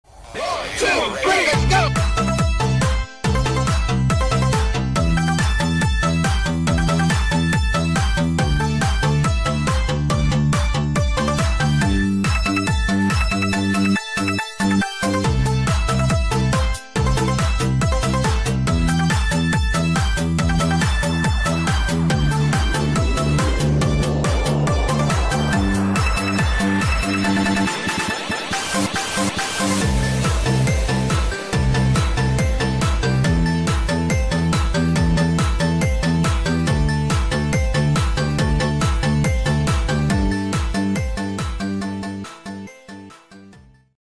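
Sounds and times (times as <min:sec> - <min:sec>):
Vietnamese remix music: 0:00.4 - 0:07.2, 0:07.8 - 0:43.1.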